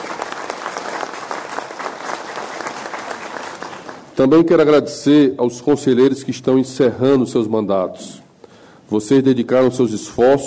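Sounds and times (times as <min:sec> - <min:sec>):
round of applause: 0:00.0 - 0:04.2
speech: 0:04.2 - 0:08.2, 0:08.9 - 0:10.4.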